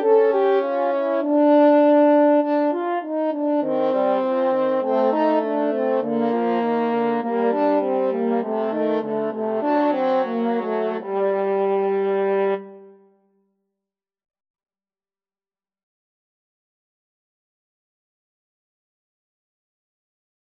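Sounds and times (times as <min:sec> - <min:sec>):
french horn duet: 0:00.0 - 0:13.1.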